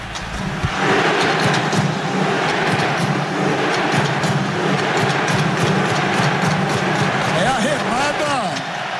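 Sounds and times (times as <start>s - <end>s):
football fans' chant in stadium: 0.7s - 8.9s.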